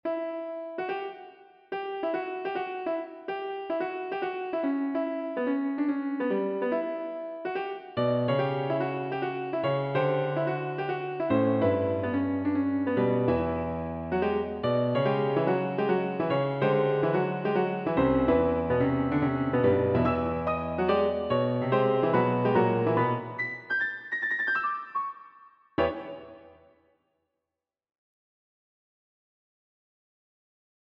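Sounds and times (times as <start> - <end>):
piano four hands: 0.1 - 26.7.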